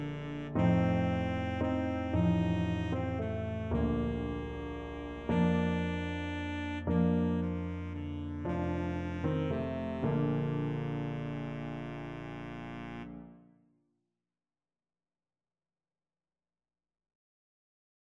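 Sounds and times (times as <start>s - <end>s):
baritone saxophone: 0.0s - 13.4s.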